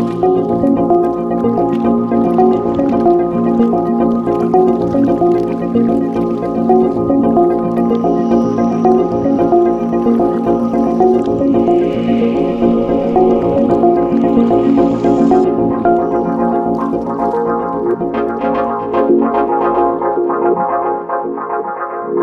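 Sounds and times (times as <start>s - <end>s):
beach ambience: 0.0s - 18.4s
lounge chillout megamix with beach ambiance: 0.0s - 22.2s.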